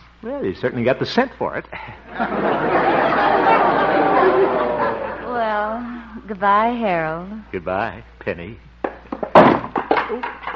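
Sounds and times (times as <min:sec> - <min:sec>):
speech: 0:00.2 - 0:04.6, 0:05.6 - 0:08.7, 0:10.1 - 0:10.4
laughter: 0:02.1 - 0:05.8
chair knocked over: 0:08.9 - 0:10.5.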